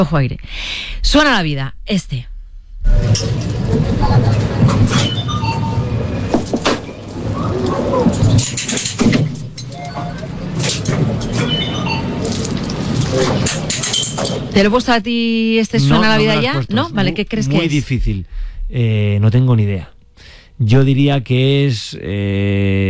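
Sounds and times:
speech: 0.0 - 5.4, 8.4 - 9.4, 13.2 - 19.9, 20.6 - 22.8
fairground amusement ride: 2.9 - 14.6.

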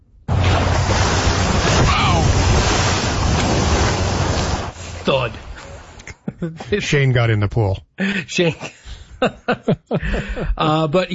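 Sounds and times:
wind noise: 0.3 - 4.8
churning ocean water: 0.3 - 6.0
orca breaching and splashing: 0.3 - 6.0
laughter: 6.0 - 6.8, 8.2 - 10.7
speech: 6.4 - 11.1.

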